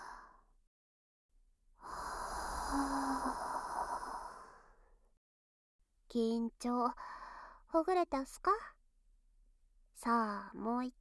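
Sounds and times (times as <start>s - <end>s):
person exhaling slowly during a guided relaxation: 1.9s - 4.6s
speech: 6.1s - 8.8s, 10.0s - 10.9s.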